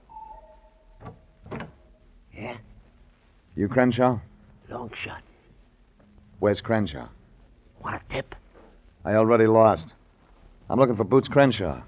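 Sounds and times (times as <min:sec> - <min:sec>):
door creaking squeal: 0:00.0 - 0:01.2
low hum: 0:00.0 - 0:09.0
speech: 0:03.6 - 0:05.3, 0:06.4 - 0:07.2, 0:07.8 - 0:08.4, 0:09.0 - 0:10.0, 0:10.7 - 0:11.8.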